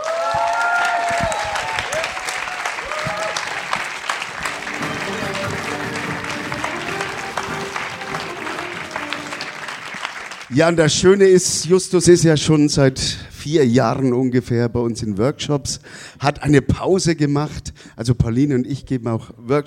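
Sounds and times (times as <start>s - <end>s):
voices cheering: 0.0s - 10.4s
audience applause: 0.0s - 10.5s
speech: 10.6s - 19.6s.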